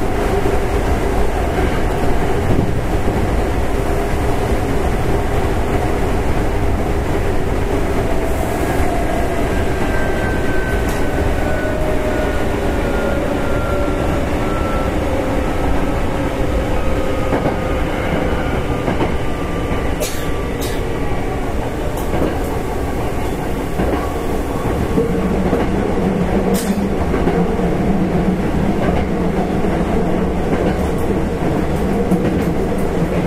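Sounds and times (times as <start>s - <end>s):
express train on the Takarazuka Line rumbling: 0.0s - 33.2s.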